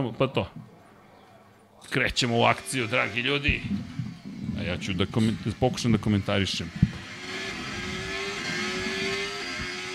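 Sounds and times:
speech: 0.0s - 0.7s, 1.8s - 3.9s, 4.6s - 7.6s
Formula 1 racing car engine: 2.1s - 9.9s.

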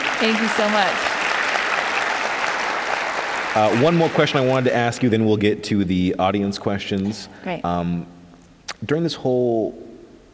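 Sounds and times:
audience applause: 0.0s - 5.3s
speech: 0.2s - 1.1s, 3.6s - 8.2s, 8.8s - 10.3s.

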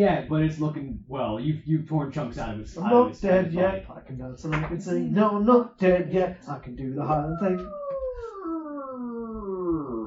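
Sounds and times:
speech: 0.0s - 7.8s
voice imitating a creaking door: 7.1s - 10.0s.

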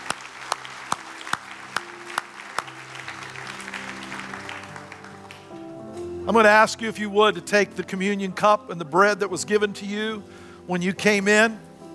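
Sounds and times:
audience applause: 0.0s - 5.8s
speech: 6.3s - 11.7s.

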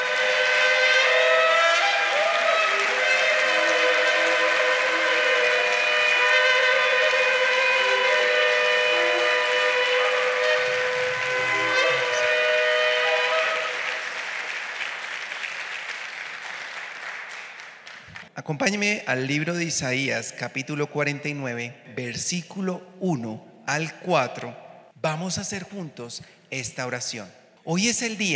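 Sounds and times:
church audience applauding: 0.0s - 18.3s
speech: 18.5s - 28.3s.

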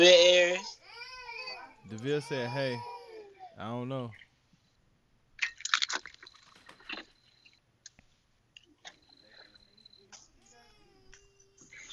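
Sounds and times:
speech: 1.9s - 2.9s, 3.6s - 4.2s
child chewing food with crunchy bites: 5.4s - 9.5s.

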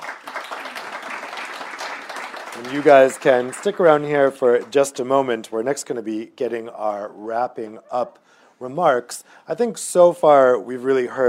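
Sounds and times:
audience applause: 0.0s - 4.8s
speech: 2.6s - 11.2s.

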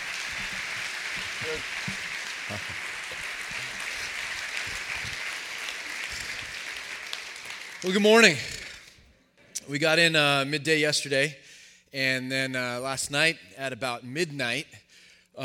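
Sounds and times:
audience applause welcoming a guest to the stage: 0.0s - 8.9s
speech: 1.5s - 2.9s, 7.8s - 8.5s, 9.7s - 14.8s.

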